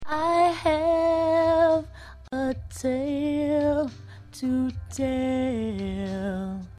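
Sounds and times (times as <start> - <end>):
a cappella singing: 0.1 - 6.7.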